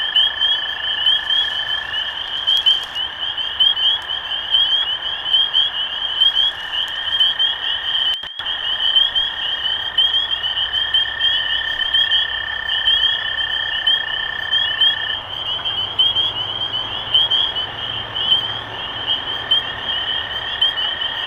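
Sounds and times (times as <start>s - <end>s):
spring peeper chorus peeping: 0.0s - 21.2s.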